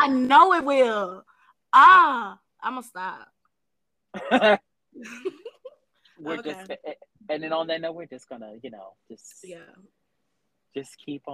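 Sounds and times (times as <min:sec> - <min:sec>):
speech: 0:00.1 - 0:03.3, 0:04.2 - 0:05.4, 0:06.2 - 0:10.0, 0:10.7 - 0:11.3
woman coughing in the background: 0:06.3 - 0:06.6.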